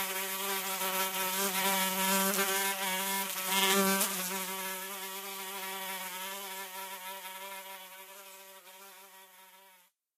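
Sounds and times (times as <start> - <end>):
fly buzzing: 0.0 - 9.9.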